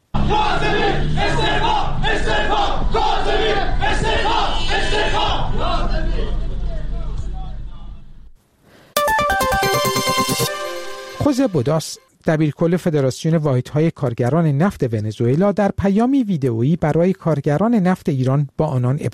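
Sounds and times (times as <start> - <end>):
large crowd of workers chanting at a rally: 0.1 - 7.0
bright electronic jingle of stepping tones: 9.0 - 12.0
speech: 11.2 - 19.1.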